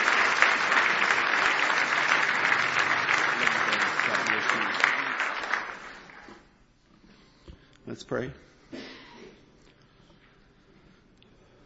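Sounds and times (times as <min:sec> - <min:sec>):
audience clapping hands in praise: 0:00.0 - 0:06.5
speech: 0:08.0 - 0:08.5.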